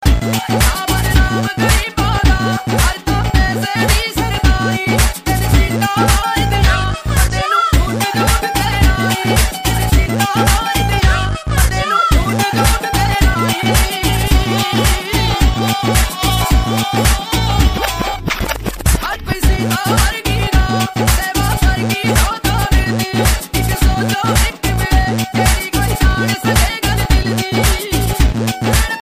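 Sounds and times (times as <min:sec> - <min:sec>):
Punjabi remix ringtone: 0:00.0 - 0:29.0.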